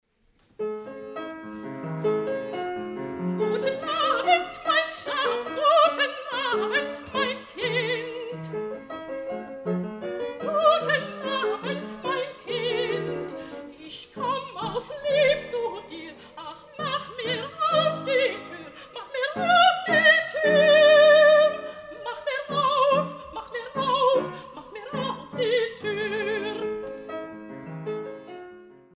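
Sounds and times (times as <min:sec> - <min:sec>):
classical song verse: 0:00.2 - 0:28.9.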